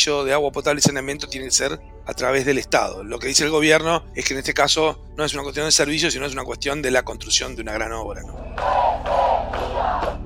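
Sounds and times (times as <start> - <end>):
speech: 0.0 - 10.2
protesters chanting outside presidential residence: 8.4 - 10.2.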